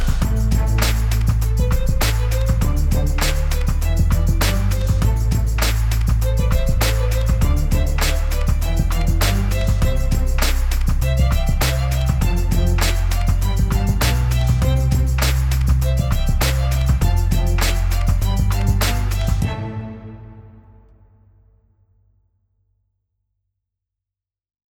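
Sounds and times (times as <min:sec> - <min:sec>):
light staccato cello: 0:00.0 - 0:20.9.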